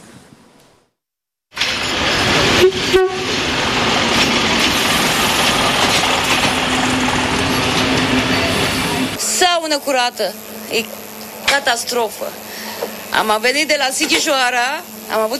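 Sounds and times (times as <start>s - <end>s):
passenger train rumbling on rails: 1.6s - 9.2s
speech: 9.8s - 15.3s.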